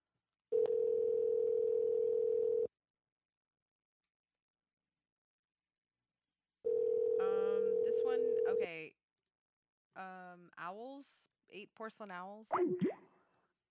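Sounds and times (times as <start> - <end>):
phone ringback tone unanswered: 0.6 - 2.7, 6.7 - 8.6
speech: 10.0 - 13.0.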